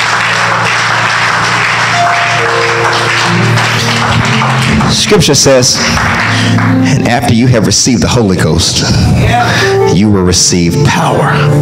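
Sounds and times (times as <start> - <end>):
audience clapping hands: 0.0 - 7.7
speech: 4.9 - 11.6.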